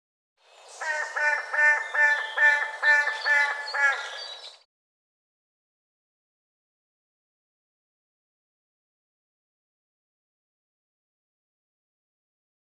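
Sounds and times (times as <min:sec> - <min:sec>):
bird giving harsh grating calls: 0:00.8 - 0:04.2.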